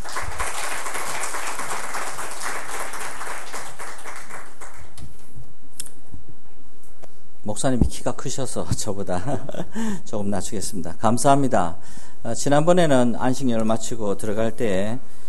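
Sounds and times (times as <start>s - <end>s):
audience applauding in welcome: 0.0s - 5.0s
speech: 7.5s - 15.2s.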